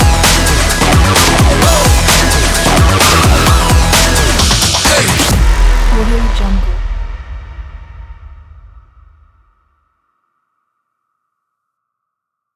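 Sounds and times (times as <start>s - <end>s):
rave music: 0.0s - 8.8s.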